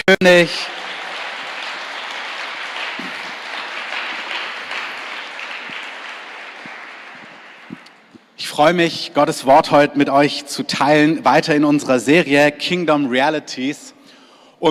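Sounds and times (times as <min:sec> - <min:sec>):
speech: 0:00.1 - 0:00.8, 0:08.6 - 0:14.0
audience applause: 0:00.3 - 0:08.1.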